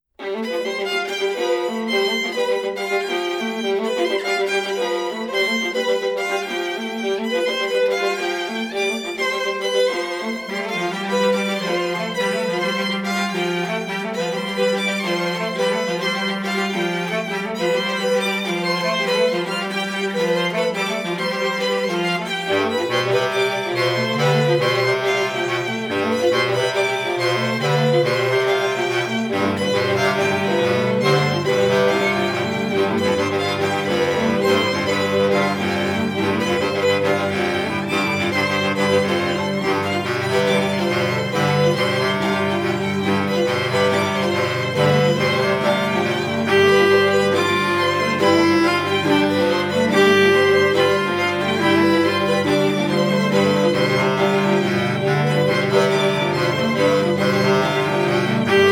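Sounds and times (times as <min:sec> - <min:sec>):
string quartet: 0:00.0 - 0:58.7
bass clarinet: 0:00.2 - 0:58.7.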